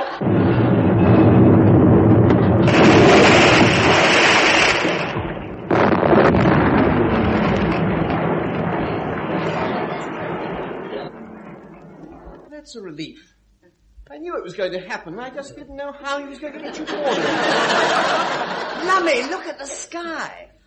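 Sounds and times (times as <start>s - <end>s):
laughter: 0.0s - 0.7s, 14.6s - 19.7s
gunfire booming on command: 0.2s - 12.6s
speech: 14.4s - 20.6s.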